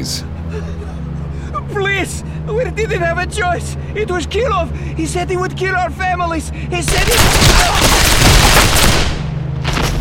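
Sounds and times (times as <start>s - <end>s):
speech: 0.0s - 8.7s
hail of gunfire: 6.9s - 9.4s.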